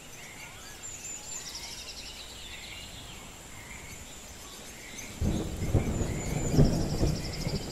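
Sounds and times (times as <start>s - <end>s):
bird calls: 0.0s - 7.7s
crickets chirring: 0.0s - 7.7s
rain hiss: 0.0s - 7.7s
thunder rumbling: 5.1s - 7.7s.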